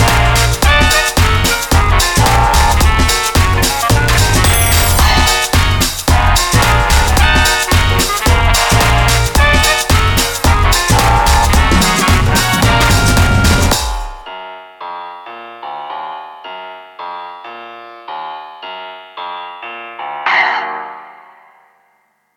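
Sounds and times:
electro swing music: 0.0s - 14.3s.

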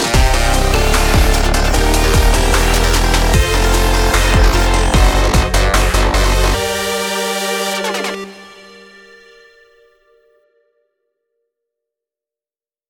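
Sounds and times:
melodic dubstep: 0.0s - 9.5s.

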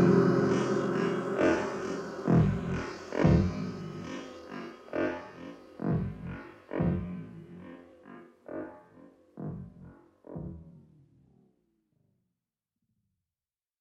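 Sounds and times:
90s IDM jungle rave music sketch: 0.0s - 5.4s.

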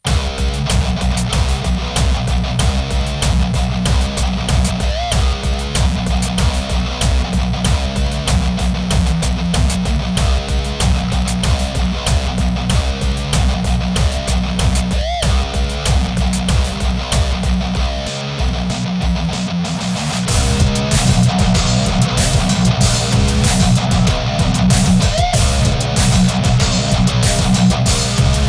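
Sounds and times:
LSDj Nanoloop chiptune guitar: 0.0s - 28.4s.

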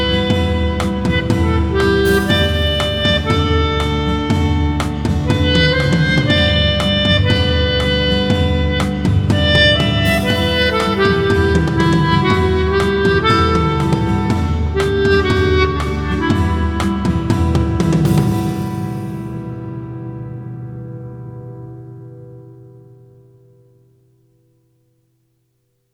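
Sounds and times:
melodica: 0.0s - 19.4s.

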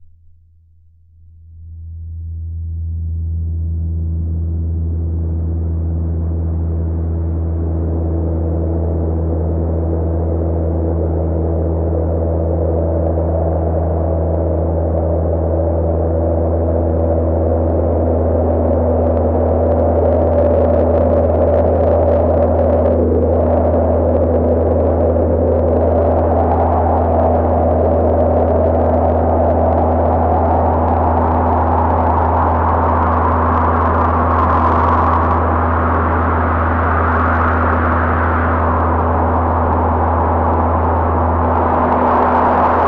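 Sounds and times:
noise etude: 1.6s - 42.8s.

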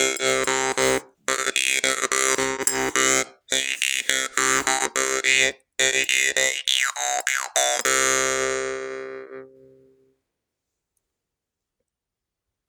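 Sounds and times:
little jig tune: 0.0s - 10.1s.

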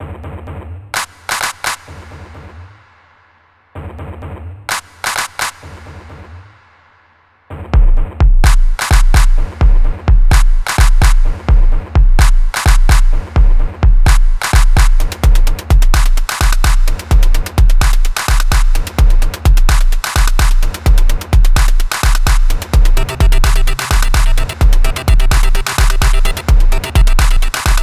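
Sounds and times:
compressed handclaps: 1.0s - 2.0s, 4.7s - 5.8s, 8.4s - 9.4s, 10.3s - 11.2s, 12.2s - 13.1s, 14.1s - 15.0s, 16.0s - 17.0s, 17.8s - 18.9s, 19.7s - 20.7s, 21.6s - 22.7s, 25.3s - 26.5s, 27.2s - 27.8s
compressed drum beat: 7.8s - 27.8s.

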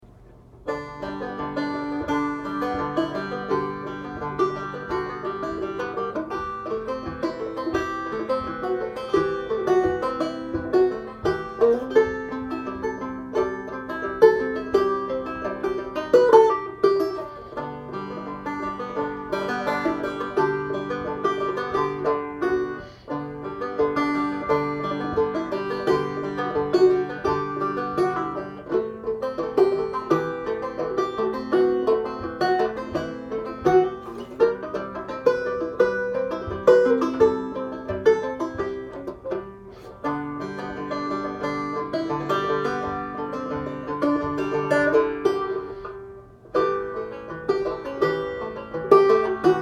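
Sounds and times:
banjo noodling: 0.0s - 49.6s.

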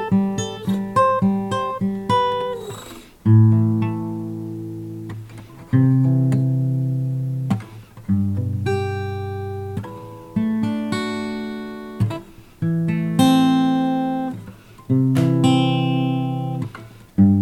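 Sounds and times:
acoustic guitar noodling: 0.0s - 17.4s.

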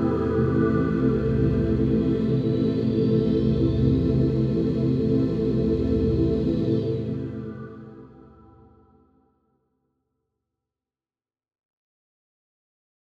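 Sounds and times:
drones: 0.0s - 8.3s.

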